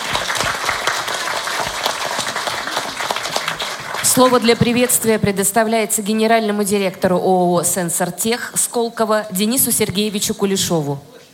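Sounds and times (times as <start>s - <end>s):
audience applause: 0.0s - 5.2s
speech: 4.2s - 11.2s.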